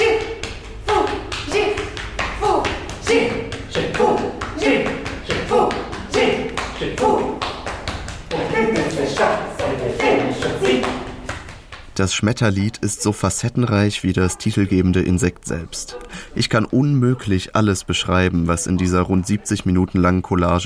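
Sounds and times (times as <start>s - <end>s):
voices chanting quick nonsense syllables: 0.0s - 7.4s, 8.3s - 11.2s
hands patting backs: 0.0s - 12.0s
speech: 12.0s - 20.6s.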